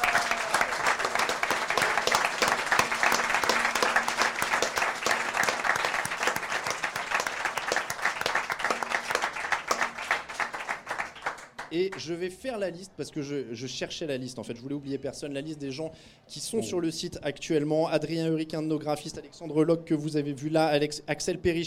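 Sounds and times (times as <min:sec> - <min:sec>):
audience applause: 0:00.0 - 0:11.7
speech: 0:11.8 - 0:21.6.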